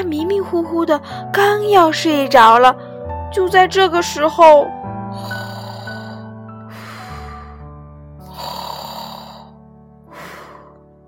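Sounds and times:
speech: 0.0 - 5.4
loud snoring: 5.2 - 7.6, 8.2 - 9.6.

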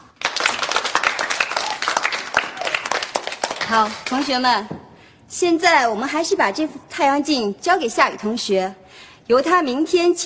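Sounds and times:
students applauding in a classroom: 0.0 - 4.3
speech: 3.7 - 10.2.

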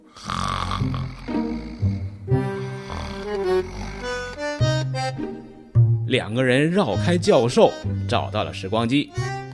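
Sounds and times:
person imitating loud snoring: 0.0 - 4.6
speech: 0.8 - 1.4, 6.1 - 9.3.

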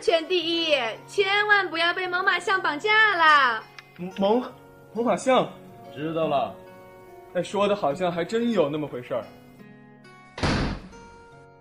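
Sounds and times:
speech: 0.0 - 6.6, 7.4 - 9.4
door closing: 10.4 - 11.0.

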